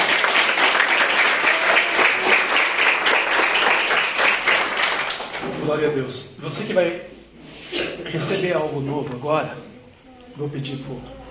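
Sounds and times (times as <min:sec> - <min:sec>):
sustained applause from a large crowd: 0:00.0 - 0:05.5
speech: 0:05.8 - 0:07.1, 0:08.1 - 0:09.7, 0:10.4 - 0:11.2.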